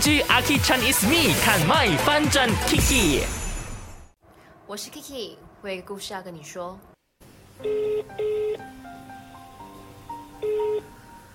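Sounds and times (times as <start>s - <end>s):
speech: 0.0s - 3.4s, 4.7s - 6.9s, 7.6s - 9.0s
telephone dialing tones: 10.4s - 10.9s.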